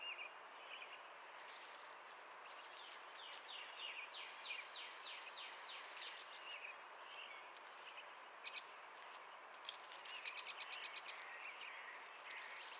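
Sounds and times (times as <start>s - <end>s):
Melospiza melodia song sparrow song: 0.0s - 12.7s.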